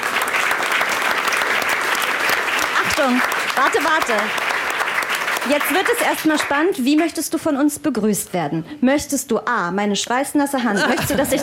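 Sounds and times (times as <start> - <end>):
stage-show audience applause: 0.0 - 7.0
speech: 3.0 - 4.4, 5.4 - 11.4
laughter: 10.6 - 11.4.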